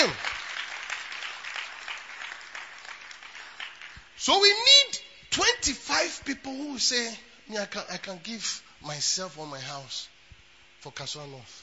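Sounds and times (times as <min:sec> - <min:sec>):
audience clapping: 0:00.0 - 0:04.2
speech: 0:04.2 - 0:10.1, 0:10.8 - 0:11.6.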